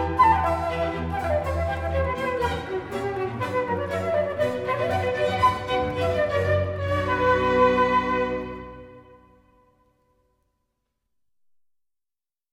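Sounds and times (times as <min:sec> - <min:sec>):
orchestra playing a suite in B minor: 0:00.0 - 0:09.7
solo flute in a suite: 0:00.0 - 0:09.7.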